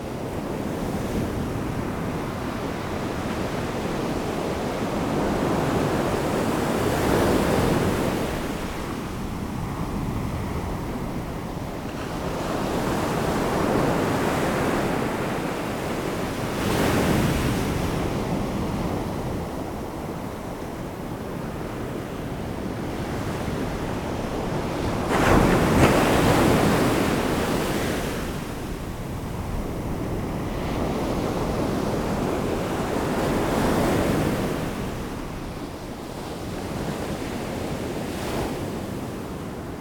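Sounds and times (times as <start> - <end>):
ocean waves: 0.0 - 38.9.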